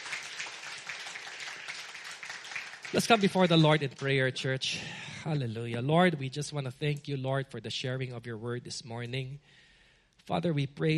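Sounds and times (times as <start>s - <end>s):
congregation clapping in praise at a church service: 0.0s - 4.6s
speech: 2.9s - 9.6s, 10.3s - 10.9s.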